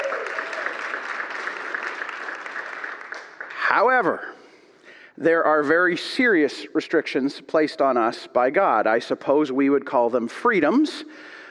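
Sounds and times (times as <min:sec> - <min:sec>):
audience cheering: 0:00.0 - 0:02.4
applause: 0:00.0 - 0:04.3
speech: 0:03.7 - 0:04.4, 0:05.2 - 0:11.3.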